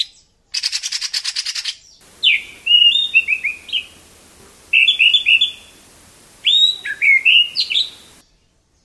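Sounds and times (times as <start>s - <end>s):
combined calls of anis and kacer birds: 2.0s - 8.2s.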